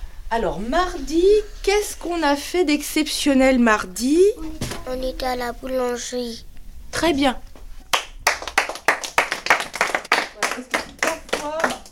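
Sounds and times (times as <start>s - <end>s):
speech: 0.3s - 7.5s
group clapping hands: 7.9s - 11.9s.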